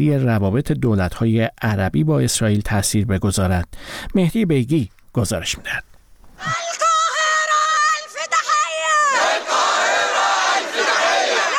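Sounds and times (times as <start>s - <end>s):
speech: 0.0s - 6.8s
protest crowd shouting in the street: 6.5s - 11.5s.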